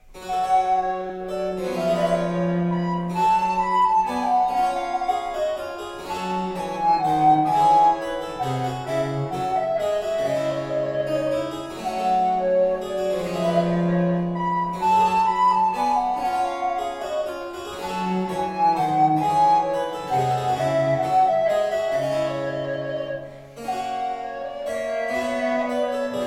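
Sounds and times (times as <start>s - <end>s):
basso continuo: 0.0s - 26.2s
recorder minuet in G minor: 0.0s - 26.2s.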